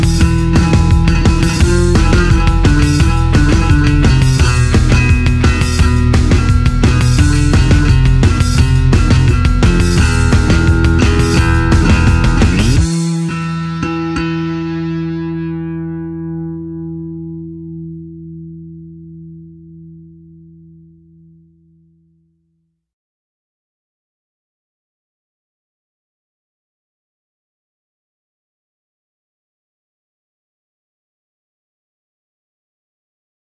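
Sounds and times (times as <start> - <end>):
fidget spinner spinning on a bass guitar: 0.0 - 15.8.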